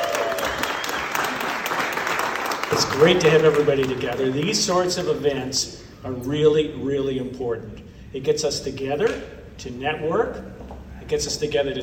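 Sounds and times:
crowd round of applause: 0.0s - 4.8s
speech: 2.7s - 11.8s.

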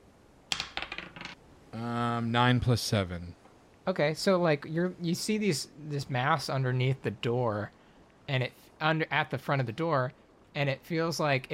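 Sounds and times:
dice clattering across a hard surface: 0.5s - 1.4s
speech: 1.8s - 11.5s.

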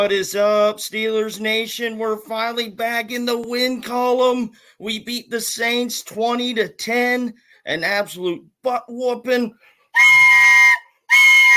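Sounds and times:
speech: 0.0s - 10.1s
victory whistle blast: 10.0s - 11.5s.

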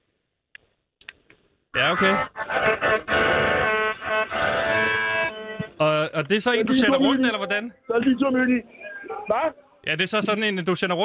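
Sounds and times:
speech: 1.8s - 3.3s, 6.2s - 11.0s
melodica being played: 1.8s - 7.7s.

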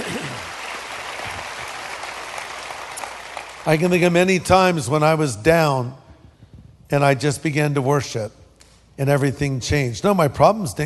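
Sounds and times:
audience clapping: 0.0s - 4.8s
speech: 3.6s - 6.0s, 6.9s - 8.4s, 9.0s - 10.8s.

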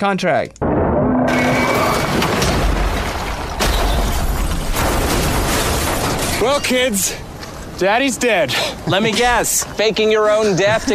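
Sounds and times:
speech: 0.0s - 0.6s, 6.4s - 7.2s, 7.8s - 10.9s
car crashing after driving off cliff: 0.6s - 7.2s.

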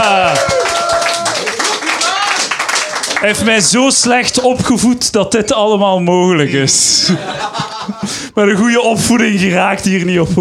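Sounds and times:
audience applause: 0.0s - 3.8s
speech: 3.2s - 10.3s
laughter: 6.5s - 9.2s.

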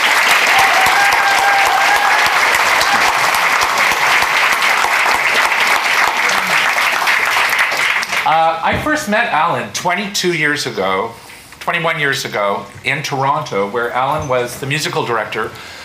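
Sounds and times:
audience applause at the NAC welcoming a composer: 0.0s - 8.5s
speech: 8.3s - 15.8s.

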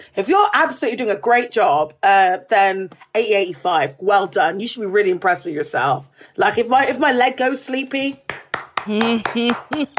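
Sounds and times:
speech: 0.2s - 9.9s
hands clapping: 8.1s - 9.9s.

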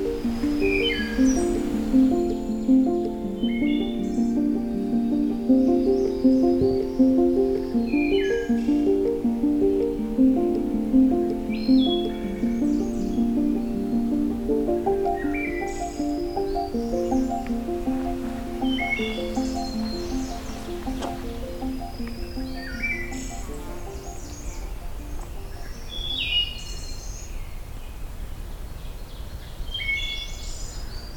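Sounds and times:
Wood Thrush singing: 0.0s - 26.1s.

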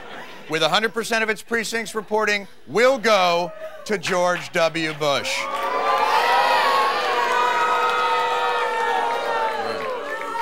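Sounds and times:
speech: 0.5s - 5.6s
large crowd cheering: 4.0s - 10.4s.

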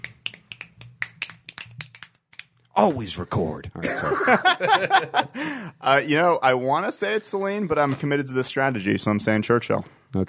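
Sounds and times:
finger snaps: 0.0s - 2.5s
speech: 2.8s - 10.2s
laughter: 3.8s - 5.7s.

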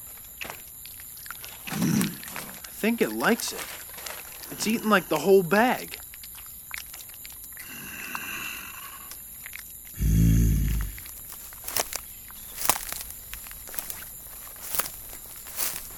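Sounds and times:
Sasquatch footsteps walking away: 0.0s - 15.9s
hissing background: 0.6s - 15.9s
speech: 2.8s - 3.8s, 4.5s - 6.0s.

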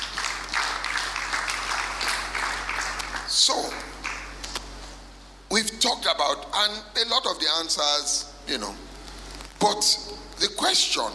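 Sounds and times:
audience applause: 0.0s - 4.3s
speech: 3.4s - 3.9s, 5.5s - 8.8s, 9.6s - 11.1s.

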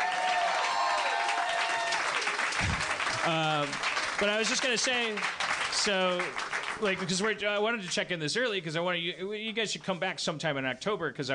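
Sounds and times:
crowd clapping: 0.0s - 7.6s
low thump: 2.6s - 2.9s
speech: 3.2s - 11.3s.

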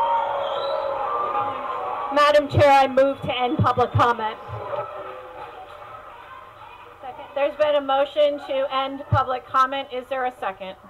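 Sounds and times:
audience cheering at a meeting: 0.0s - 6.4s
speech: 2.1s - 4.6s, 7.4s - 10.8s.

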